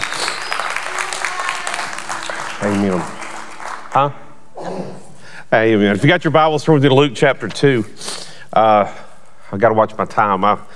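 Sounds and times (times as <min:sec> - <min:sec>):
audience hand clapping: 0:00.0 - 0:04.4
speech: 0:02.6 - 0:03.2, 0:03.9 - 0:10.7.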